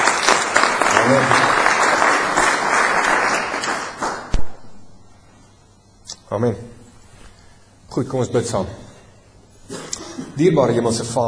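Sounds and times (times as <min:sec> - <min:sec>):
audience applause: 0:00.0 - 0:04.3
speech: 0:01.1 - 0:01.5, 0:06.3 - 0:06.8, 0:08.0 - 0:08.9, 0:10.4 - 0:11.2.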